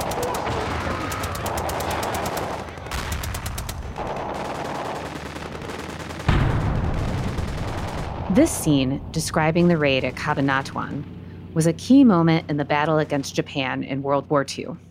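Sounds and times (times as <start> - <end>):
machine gun and rifle fire: 0.0 - 8.3
speech: 8.4 - 14.8.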